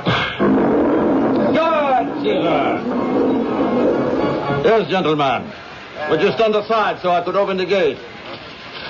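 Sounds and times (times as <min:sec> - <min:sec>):
lion growling in cage: 0:00.1 - 0:04.4
speech: 0:04.7 - 0:08.1.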